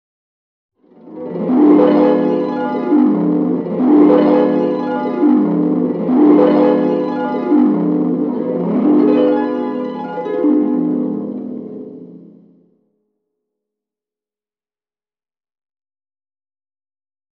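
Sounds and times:
harp: 0:00.9 - 0:12.5.

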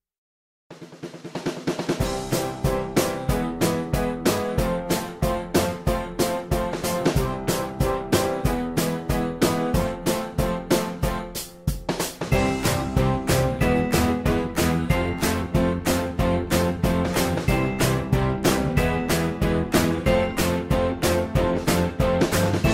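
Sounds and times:
positive cheerful music: 0:01.9 - 0:22.7.

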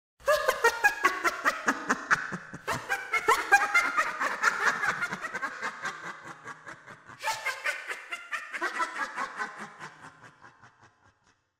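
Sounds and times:
person laughing: 0:00.2 - 0:11.4.

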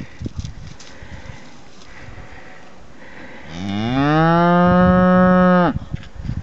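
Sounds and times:
Peruvian cow mooing: 0:03.5 - 0:05.8.

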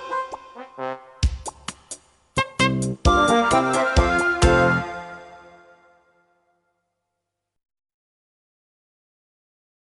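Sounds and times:
musical accompaniment: 0:00.0 - 0:06.3.

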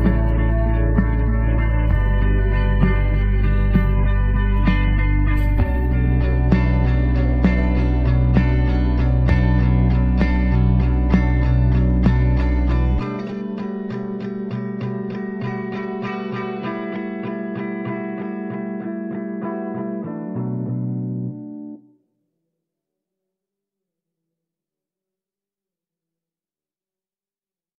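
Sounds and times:
instrumental music: 0:00.0 - 0:22.0.

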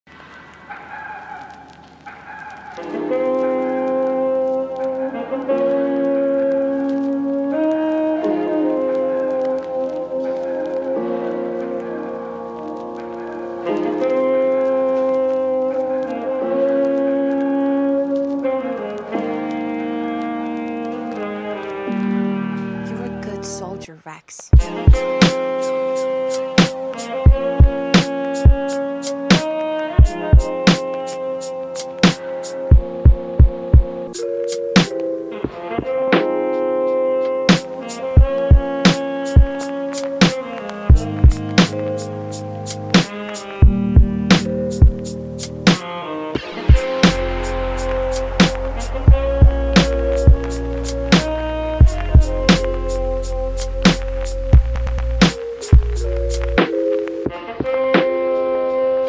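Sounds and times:
lofi music: 0:00.1 - 0:59.0.

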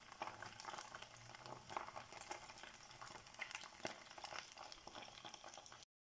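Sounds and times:
hot oil sizzling: 0:00.0 - 0:05.9.

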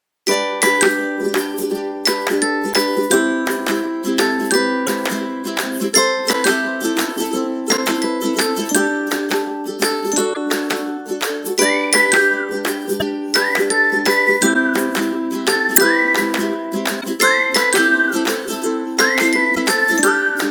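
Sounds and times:
cheerful and fun instrumental background music: 0:00.3 - 0:20.4.

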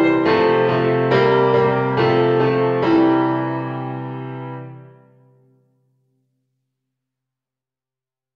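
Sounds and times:
piano music: 0:00.0 - 0:05.6.

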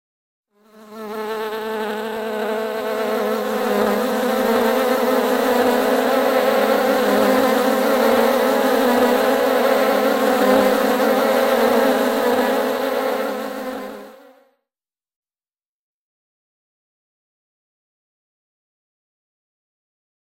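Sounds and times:
bees buzzing: 0:00.6 - 0:14.5.

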